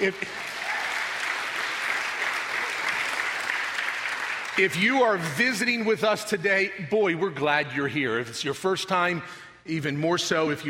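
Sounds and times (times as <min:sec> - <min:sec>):
speech: 0:00.0 - 0:00.5, 0:04.6 - 0:10.6
audience clapping: 0:00.0 - 0:05.5.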